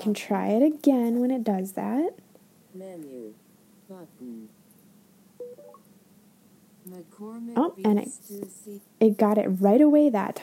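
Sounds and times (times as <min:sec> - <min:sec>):
speech: 0:00.0 - 0:02.2, 0:02.8 - 0:04.6, 0:06.8 - 0:10.4
barcode scanner app beeping: 0:05.4 - 0:05.8.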